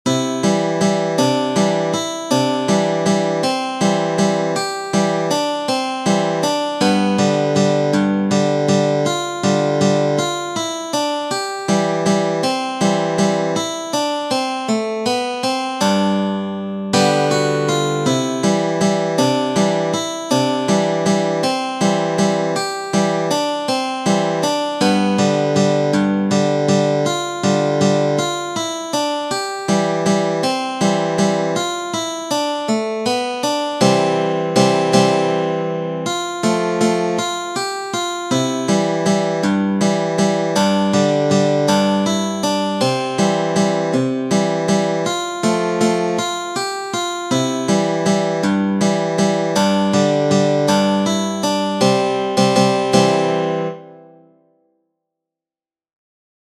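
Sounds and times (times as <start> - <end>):
guitar waltz: 0.1 - 53.8.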